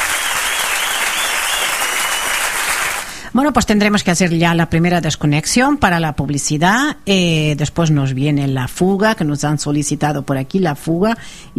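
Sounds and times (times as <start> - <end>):
audience applause: 0.0 - 3.2
speech: 3.4 - 11.5.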